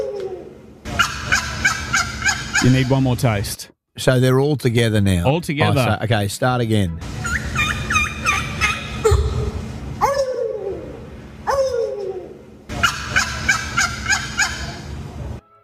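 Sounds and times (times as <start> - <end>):
turkey gobbling calls: 0.9 - 3.0, 7.2 - 14.9
speech: 2.6 - 7.2.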